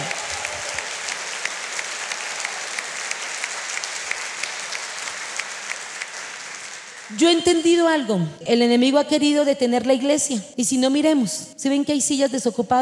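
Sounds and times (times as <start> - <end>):
audience applauding loudly: 0.0 - 7.3
speech: 7.1 - 12.8.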